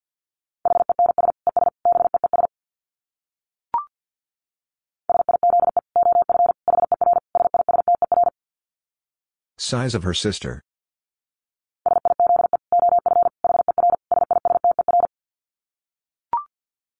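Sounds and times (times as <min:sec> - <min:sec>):
Morse code beeps at 50 wpm: 0:00.7 - 0:02.5, 0:05.1 - 0:08.3, 0:11.9 - 0:15.1
speech: 0:09.7 - 0:10.7.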